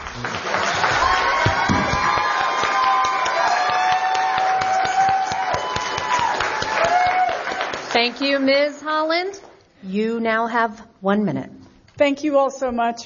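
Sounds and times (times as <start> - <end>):
audience applause: 0.0 - 8.5
speech: 8.0 - 13.0.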